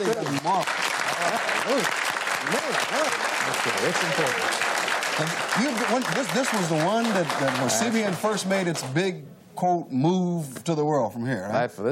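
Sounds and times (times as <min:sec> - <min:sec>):
round of applause: 0:00.0 - 0:08.6
speech: 0:00.0 - 0:11.9.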